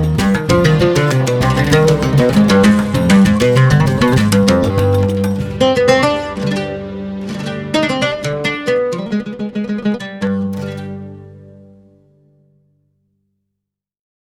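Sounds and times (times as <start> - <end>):
Arabic oud playing: 0.0 - 12.6.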